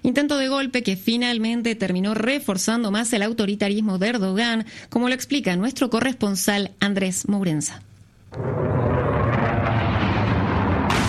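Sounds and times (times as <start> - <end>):
speech: 0.1 - 8.7
F-16 fighter jet bombing the presidential palace in Ankara: 8.3 - 11.0.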